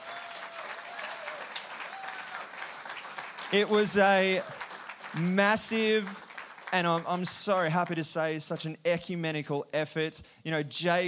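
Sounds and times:
audience applause: 0:00.0 - 0:07.9
speech: 0:03.5 - 0:11.0.

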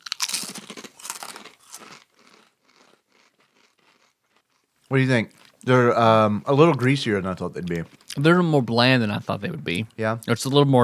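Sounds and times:
crunching potato chips: 0:00.0 - 0:04.7
speech: 0:04.9 - 0:10.8.

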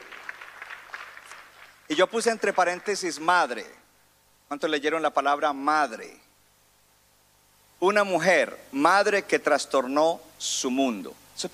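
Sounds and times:
audience applause: 0:00.0 - 0:01.9
speech: 0:01.9 - 0:03.8, 0:04.5 - 0:06.2, 0:07.8 - 0:11.5.

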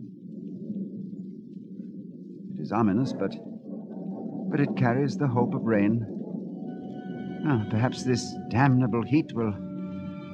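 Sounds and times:
distant thunder rumbling: 0:01.7 - 0:09.6
speech: 0:02.6 - 0:03.5, 0:04.5 - 0:06.2, 0:07.4 - 0:09.7.

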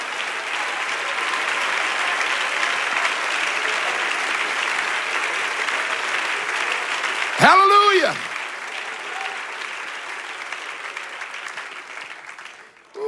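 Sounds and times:
audience clapping: 0:00.0 - 0:13.0
speech: 0:07.4 - 0:08.3.

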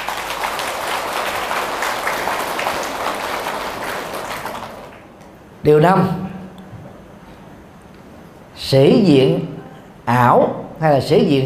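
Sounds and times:
applause: 0:00.0 - 0:05.4
speech: 0:05.6 - 0:06.2, 0:08.7 - 0:09.5, 0:10.1 - 0:11.4.

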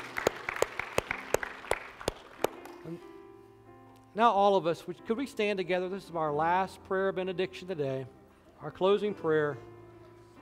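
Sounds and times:
audience clapping hands: 0:00.0 - 0:02.9
speech: 0:02.9 - 0:03.1, 0:04.2 - 0:09.7.

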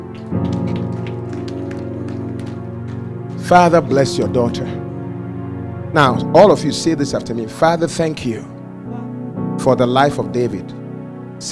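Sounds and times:
crowd clapping: 0:00.0 - 0:03.7
sustained keyboard or organ chords: 0:00.0 - 0:11.5
speech: 0:03.5 - 0:04.8, 0:05.9 - 0:08.5, 0:09.6 - 0:10.8.

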